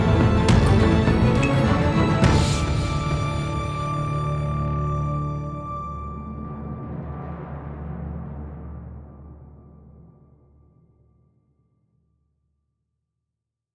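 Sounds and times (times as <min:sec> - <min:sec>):
action music loop: 0:00.0 - 0:04.8.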